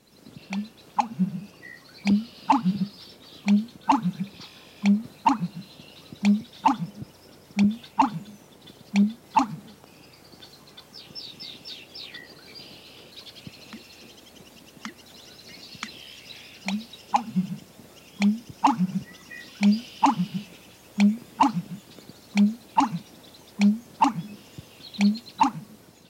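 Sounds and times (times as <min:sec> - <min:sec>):
American bittern call: 0:00.3 - 0:09.9, 0:15.7 - 0:25.8.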